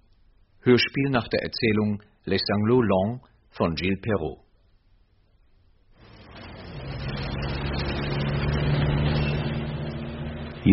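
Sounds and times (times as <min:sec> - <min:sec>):
speech: 0:00.6 - 0:04.4
city street traffic of passing cars and trucks: 0:06.0 - 0:10.7.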